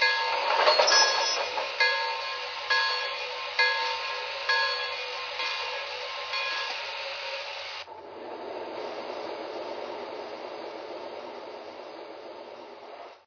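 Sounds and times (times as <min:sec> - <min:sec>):
M1A freight train: 0:00.0 - 0:13.2.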